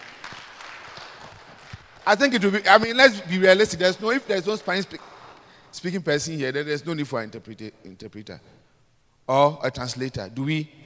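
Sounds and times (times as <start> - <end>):
audience clapping: 0.0 - 5.5
speech: 2.1 - 5.1, 5.7 - 8.6, 9.3 - 10.8.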